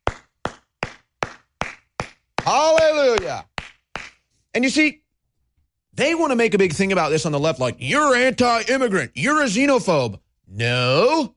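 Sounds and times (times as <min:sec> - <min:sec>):
single man standing and clapping: 0:00.0 - 0:04.3
speech: 0:02.5 - 0:03.5, 0:04.5 - 0:05.0, 0:06.0 - 0:11.3.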